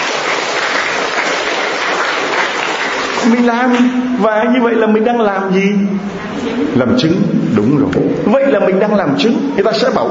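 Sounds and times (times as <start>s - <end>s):
church audience clapping during a sermon: 0.0s - 3.9s
speech: 3.2s - 10.0s.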